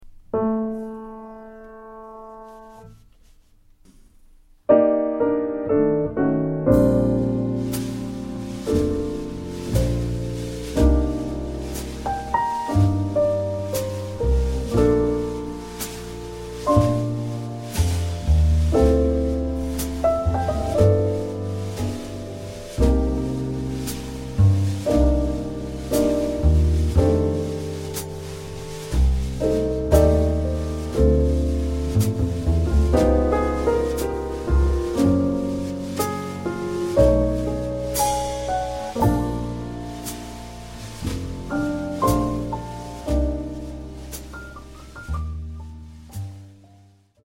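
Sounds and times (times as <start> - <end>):
instrumental backing track: 4.7 - 47.0.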